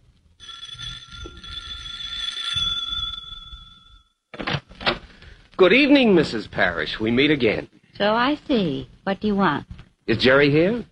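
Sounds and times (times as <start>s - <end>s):
doorbell ringing: 0.4s - 4.2s
speech: 5.6s - 10.8s.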